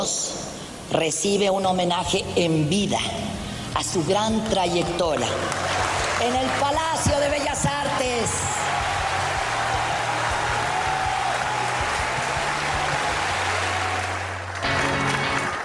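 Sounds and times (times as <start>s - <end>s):
speech: 0.9s - 8.5s
audience applause at a tribute ceremony: 5.0s - 15.6s.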